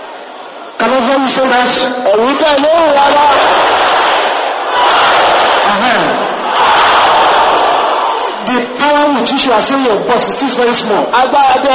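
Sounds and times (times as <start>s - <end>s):
speech: 0.8s - 3.9s, 8.9s - 11.7s
crowd shouting aggressively: 2.1s - 8.4s.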